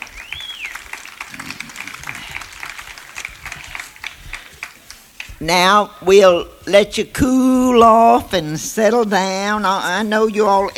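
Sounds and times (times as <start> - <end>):
audience applauding: 0.0 - 5.4
speech: 5.4 - 10.7.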